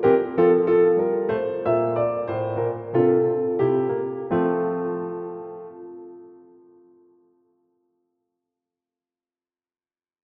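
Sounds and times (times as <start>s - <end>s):
piano: 0.0s - 7.9s.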